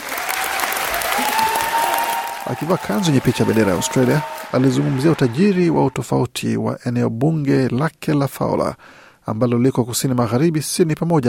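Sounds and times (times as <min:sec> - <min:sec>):
applause in the Australian parliament for independent MP Daly's first speech: 0:00.0 - 0:06.1
speech: 0:02.5 - 0:11.2.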